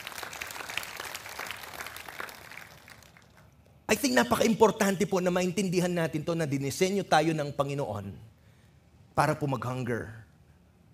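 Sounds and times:
church congregation applauding during a worship service: 0.0 - 3.5
speech: 3.9 - 8.3, 9.2 - 10.2.

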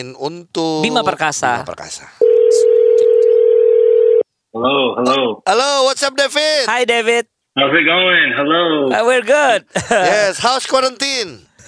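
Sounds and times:
speech: 0.0 - 2.8, 4.5 - 11.5
telephone dial tone: 2.2 - 4.2
laughter: 9.7 - 10.5.

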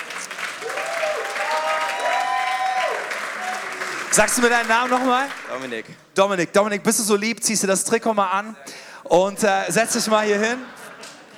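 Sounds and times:
audience applause: 0.0 - 5.9
speech: 4.1 - 10.8
laughter: 9.3 - 11.3.

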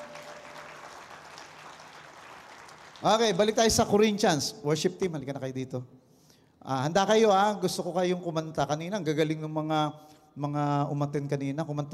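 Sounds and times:
church congregation applauding: 0.0 - 3.8
speech: 3.0 - 6.0, 6.6 - 11.9.

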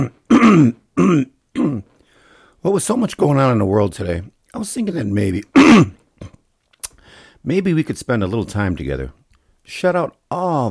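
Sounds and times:
speech: 0.0 - 1.9, 2.6 - 6.4, 7.4 - 10.7
person clearing throat: 0.0 - 2.0, 5.5 - 6.4.

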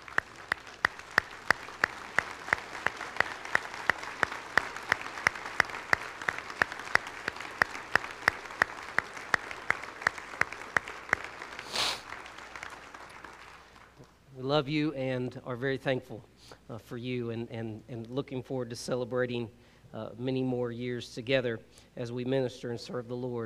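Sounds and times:
crowd giving a standing round of applause: 0.0 - 14.2
speech: 14.5 - 23.4.

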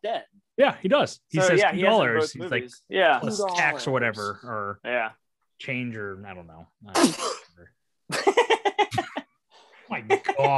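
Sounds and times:
speech: 0.0 - 9.0, 9.9 - 10.5
person sneezing: 7.0 - 7.5.

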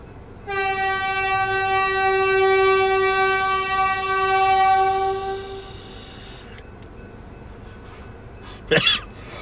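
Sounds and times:
train horn blowing downtown: 0.4 - 5.9.

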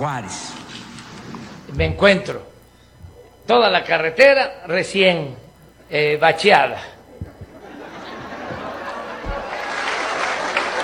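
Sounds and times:
speech: 0.0 - 0.7, 1.7 - 2.5, 3.5 - 7.0
laughter: 7.1 - 10.8
applause: 9.4 - 10.8.

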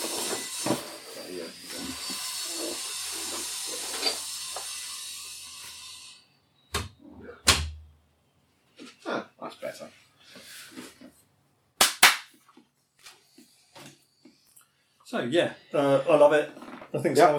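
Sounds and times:
angle grinder running in driveway: 0.0 - 6.3
speech: 15.1 - 17.3.

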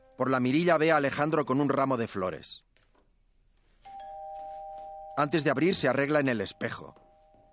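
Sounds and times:
low hiss: 0.0 - 7.5
speech: 0.2 - 2.7, 5.2 - 7.0
electronic doorbell ringing: 3.9 - 7.5.

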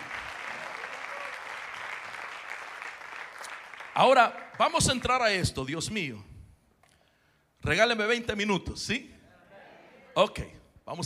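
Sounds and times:
audience applauding loudly: 0.0 - 5.4
speech: 4.0 - 6.3, 7.6 - 9.2, 10.2 - 11.0.

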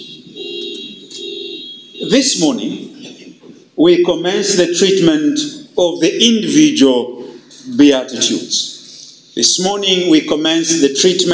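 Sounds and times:
steady electronic tone: 0.0 - 2.1
speech: 2.1 - 2.9, 3.8 - 8.7, 9.4 - 11.3.

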